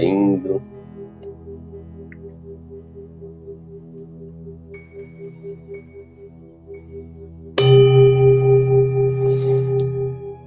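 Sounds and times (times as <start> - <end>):
soft steady tonal hum: 0.0 - 10.4
meditation bell ringing: 7.6 - 10.4.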